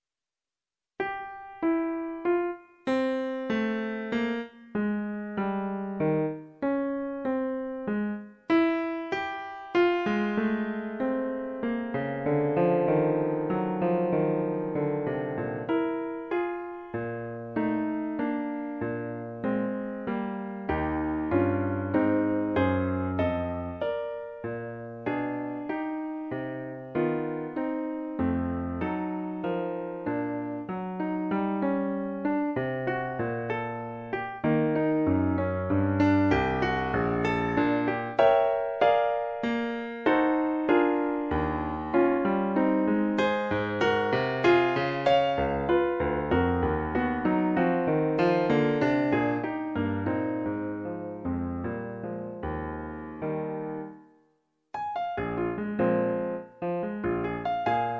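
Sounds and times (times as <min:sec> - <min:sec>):
clarinet sonata: 0:01.0 - 0:54.2, 0:54.8 - 0:57.9.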